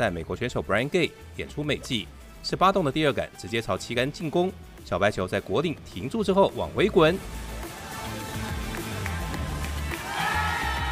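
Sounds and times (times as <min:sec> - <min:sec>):
speech: 0:00.0 - 0:07.5
golf gallery cheering and clapping: 0:07.6 - 0:10.8.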